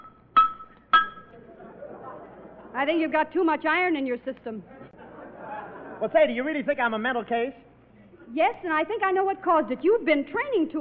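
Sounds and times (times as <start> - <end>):
reflex hammer tapping knee: 0.0 - 1.3
laughter: 1.3 - 3.0, 4.7 - 6.5
speech: 2.8 - 4.8, 6.0 - 7.6, 8.3 - 10.7.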